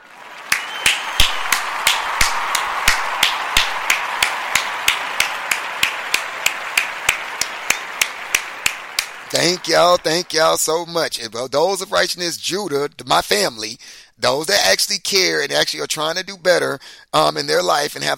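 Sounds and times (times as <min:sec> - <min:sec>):
single person clapping hands: 0:00.0 - 0:10.6
speech: 0:09.3 - 0:18.1.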